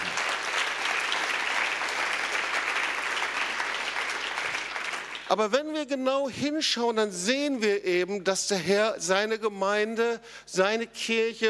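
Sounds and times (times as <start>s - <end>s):
crowd applause: 0.0s - 5.3s
speech: 5.3s - 11.4s.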